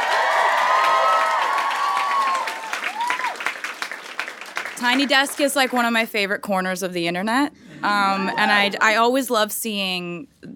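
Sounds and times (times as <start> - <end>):
audience applause: 0.0 - 5.4
speech: 4.8 - 10.5.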